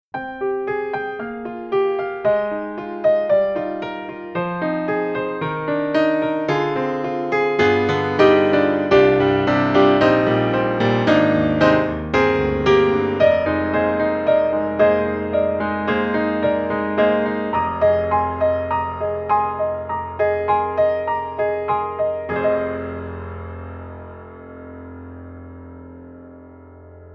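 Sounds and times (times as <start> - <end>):
piano: 0.1 - 27.1.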